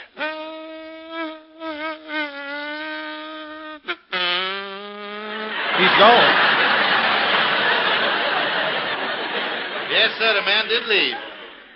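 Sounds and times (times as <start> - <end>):
voice imitating a mosquito's whining buzz: 0.0 - 5.7
laughter: 5.4 - 11.7
speech: 5.8 - 6.5, 10.0 - 11.3.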